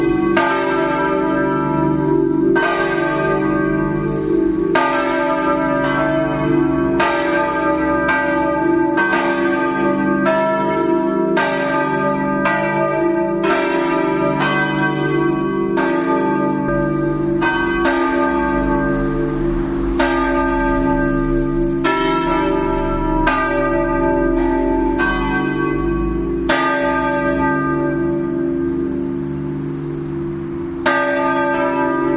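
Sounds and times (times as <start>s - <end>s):
bells ringing: 0.0s - 32.1s.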